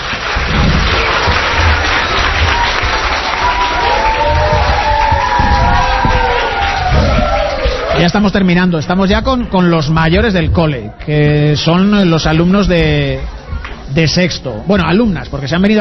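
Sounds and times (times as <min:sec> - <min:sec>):
audience applause: 0:00.0 - 0:09.1
speech: 0:08.0 - 0:15.7.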